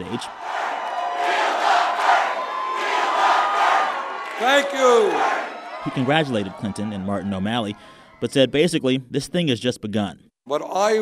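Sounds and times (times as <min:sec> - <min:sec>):
speech: 0:00.0 - 0:00.5, 0:04.4 - 0:11.0
rowdy crowd cheering and shouting at rally: 0:00.0 - 0:08.6.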